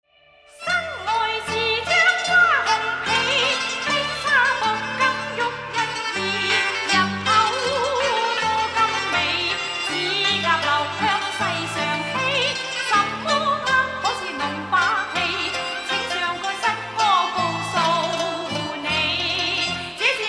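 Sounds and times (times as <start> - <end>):
Chinese folk music: 0.5 - 20.2.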